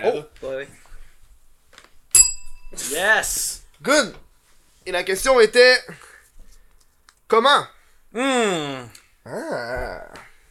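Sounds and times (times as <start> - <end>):
speech: 0.0 - 0.9, 2.7 - 4.2, 4.8 - 6.0, 7.3 - 10.2
bell being rung: 2.1 - 2.9.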